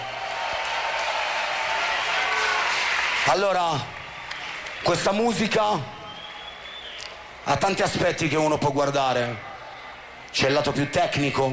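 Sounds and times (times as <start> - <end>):
audience applause: 0.0 - 4.9
speech: 3.2 - 4.0, 4.8 - 6.0, 7.4 - 9.5, 10.3 - 11.5.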